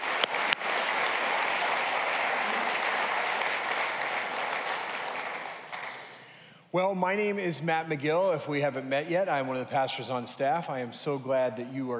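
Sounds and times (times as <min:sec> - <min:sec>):
audience applause: 0:00.0 - 0:06.1
speech: 0:06.8 - 0:11.9.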